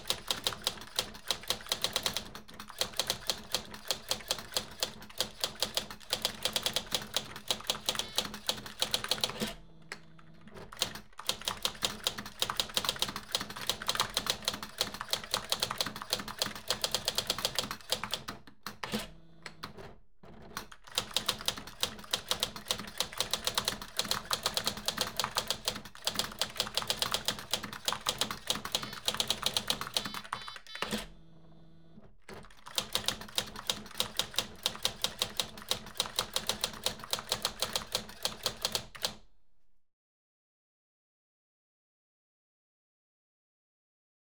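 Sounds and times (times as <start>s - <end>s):
typewriter typing: 0.0s - 9.6s, 10.4s - 31.1s, 32.3s - 39.2s
computers whirring: 27.8s - 31.2s.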